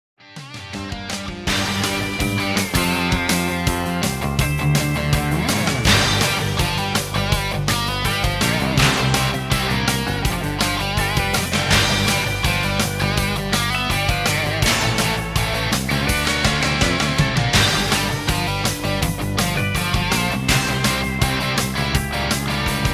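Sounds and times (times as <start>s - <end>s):
music: 0.2s - 22.9s.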